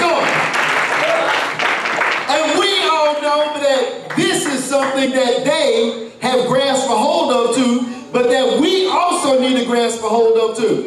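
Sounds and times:
audience clapping: 0.0 - 2.9
speech: 3.8 - 10.8.

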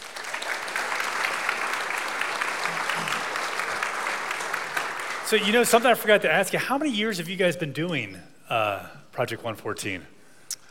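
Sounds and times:
audience applause: 0.0 - 6.4
speech: 5.3 - 10.2.

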